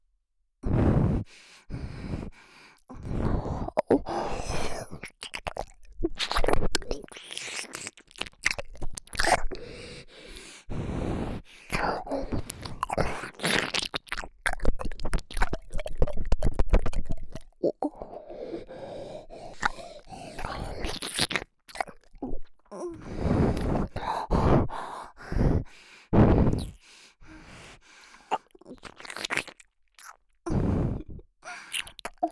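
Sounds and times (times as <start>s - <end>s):
nose breathing: 0.6s - 5.0s, 9.1s - 13.8s, 16.8s - 21.4s, 23.0s - 28.5s, 30.5s - 32.1s
ear licking sounds: 3.3s - 9.7s, 11.3s - 17.8s, 19.2s - 22.6s, 27.6s - 30.3s, 31.0s - 32.2s.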